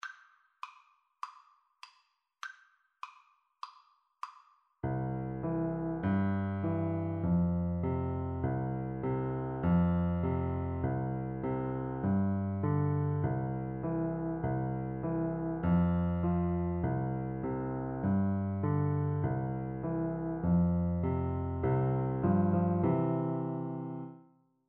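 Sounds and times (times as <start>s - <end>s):
nursery rhyme piano duet: 4.8s - 24.2s.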